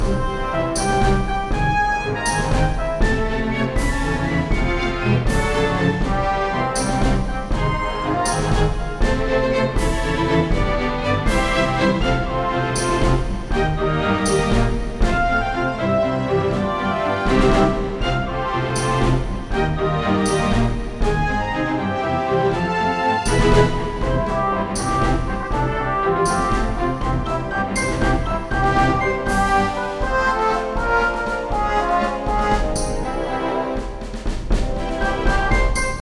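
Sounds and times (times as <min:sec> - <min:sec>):
boss duel music: 0:00.0 - 0:36.0.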